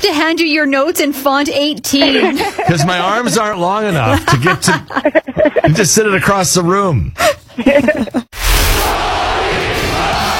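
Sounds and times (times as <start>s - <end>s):
speech: 0.1s - 8.3s
laughter: 1.9s - 6.1s, 7.5s - 8.3s
crowd cheering: 8.6s - 10.3s.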